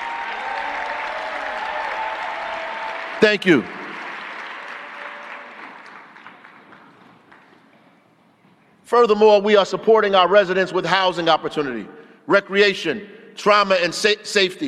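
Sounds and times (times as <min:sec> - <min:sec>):
audience applause: 0:00.0 - 0:07.6
speech: 0:03.2 - 0:03.8, 0:08.9 - 0:14.6.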